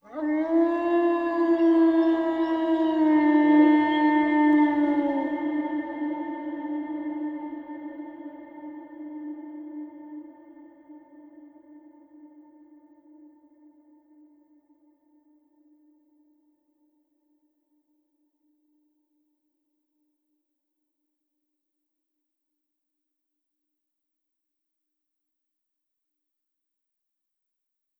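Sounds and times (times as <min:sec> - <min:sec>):
animals: 0:00.0 - 0:05.6.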